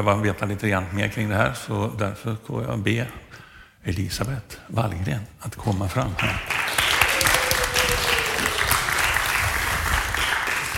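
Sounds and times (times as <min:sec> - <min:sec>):
speech: 0:00.0 - 0:06.5
applause: 0:06.2 - 0:10.7.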